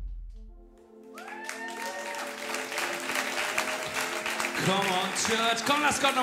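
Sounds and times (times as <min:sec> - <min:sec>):
cheers and whoops: 0:01.1 - 0:04.5
audience applause: 0:01.1 - 0:06.2.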